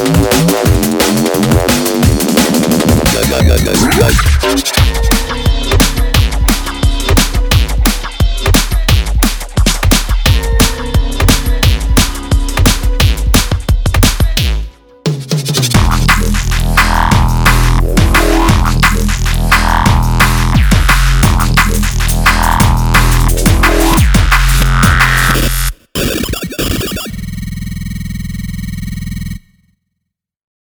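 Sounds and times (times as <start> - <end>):
drum and bass beat: 0.0 - 29.4.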